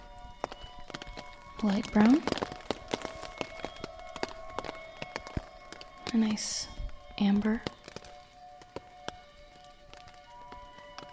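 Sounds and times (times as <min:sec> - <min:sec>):
rain pattering on a tent: 0:00.0 - 0:11.1
speech: 0:01.6 - 0:02.5, 0:06.1 - 0:07.8.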